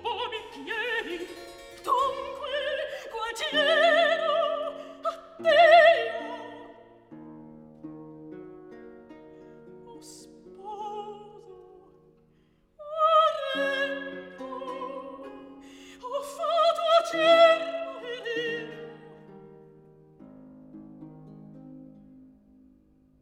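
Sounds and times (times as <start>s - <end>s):
recitative singing: 0.0s - 7.0s, 12.8s - 19.3s.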